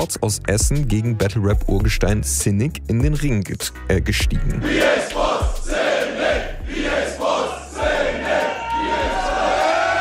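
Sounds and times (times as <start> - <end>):
speech: 0.0 - 6.5
crowd roaring at a battle rap event: 4.6 - 9.9.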